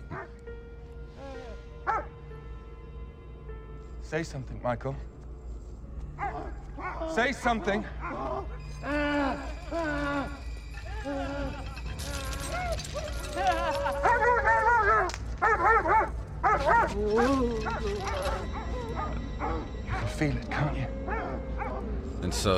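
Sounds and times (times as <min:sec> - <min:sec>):
dogs barking and yelping: 0:00.0 - 0:00.5, 0:01.8 - 0:02.2, 0:06.1 - 0:22.2
speech: 0:04.1 - 0:05.2, 0:07.1 - 0:08.2, 0:16.9 - 0:18.3, 0:22.3 - 0:22.5.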